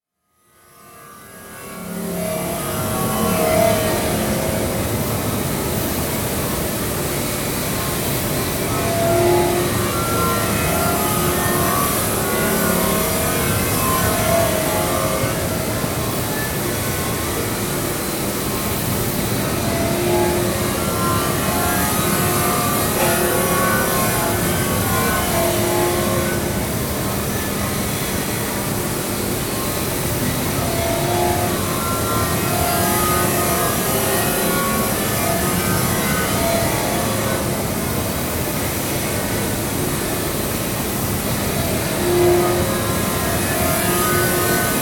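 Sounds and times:
slab grinding machine in stainless steel making: 0:00.6 - 0:44.7.

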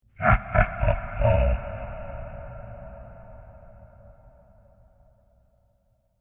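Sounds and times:
evil laughter from a monster king: 0:00.2 - 0:02.7.

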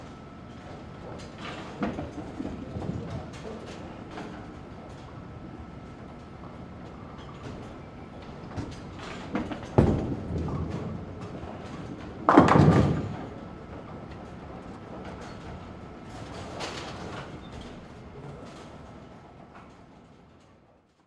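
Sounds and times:
bowling alley: 0:00.5 - 0:19.3.

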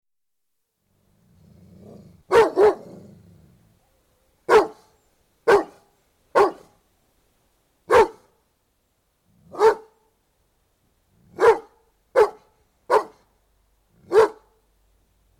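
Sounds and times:
Doberman barking outdoors: 0:02.3 - 0:03.0, 0:03.8 - 0:06.8, 0:07.9 - 0:08.4, 0:09.5 - 0:10.1, 0:11.3 - 0:13.3, 0:14.0 - 0:14.6.

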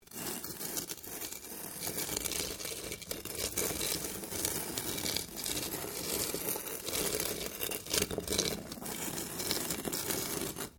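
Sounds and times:
small stone scraping on stone: 0:00.0 - 0:10.7.

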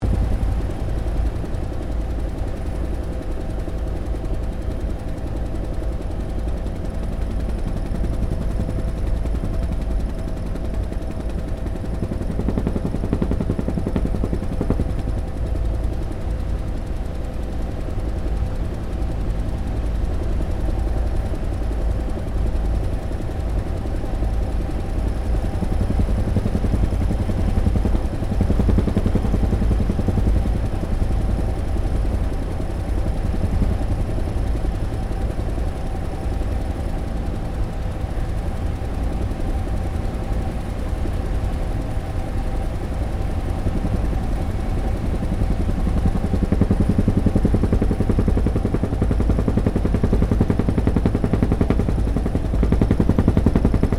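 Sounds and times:
UH1 Iroquois helicopter flying, interior: 0:00.0 - 0:53.9.

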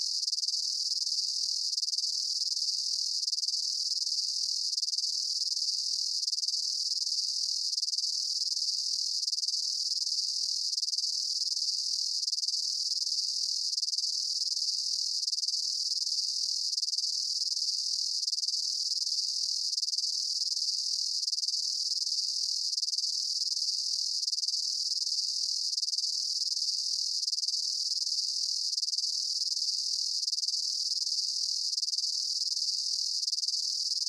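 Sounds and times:
insects chirping in a swamp: 0:00.0 - 0:34.0.

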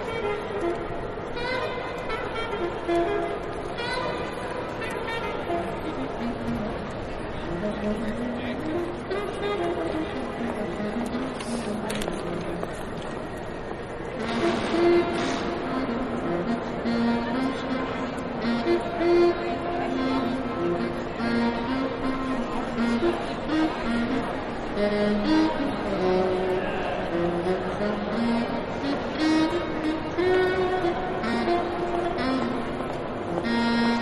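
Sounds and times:
train station ambience: 0:00.0 - 0:34.0.

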